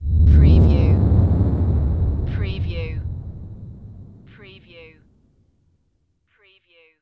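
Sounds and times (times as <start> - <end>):
evil pass-by whoosh: 0.0 - 4.4.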